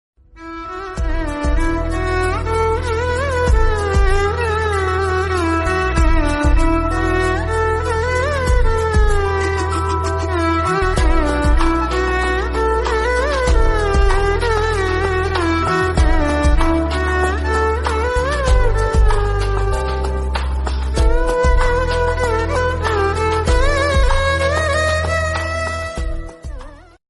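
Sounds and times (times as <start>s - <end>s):
violin: 0.2s - 27.0s.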